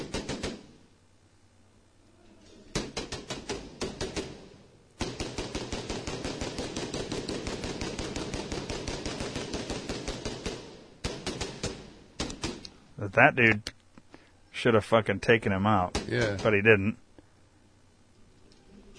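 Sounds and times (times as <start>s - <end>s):
gunfire from a played video of a shooting at a mosque: 0.0s - 0.8s, 2.8s - 12.6s
speech: 13.1s - 13.8s, 14.6s - 17.0s.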